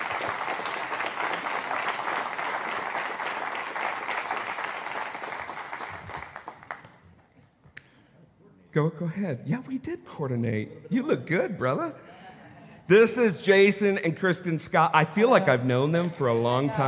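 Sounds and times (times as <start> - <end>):
church congregation applauding a welcome: 0.0 - 7.2
speech: 8.7 - 12.2, 12.9 - 16.8.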